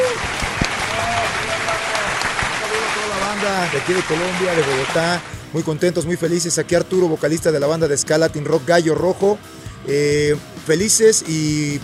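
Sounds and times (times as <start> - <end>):
faint voices and whoops: 0.0 - 2.7
crowd clapping for the band: 0.0 - 5.4
speech: 3.5 - 11.8.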